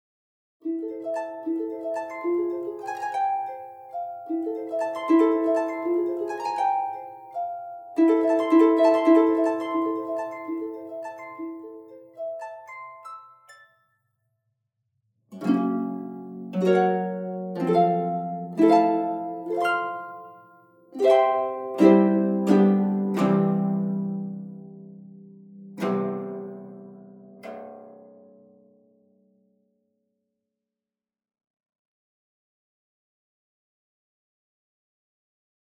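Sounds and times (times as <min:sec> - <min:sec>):
harp playing, noise reduced: 0:00.6 - 0:13.8, 0:15.3 - 0:28.7.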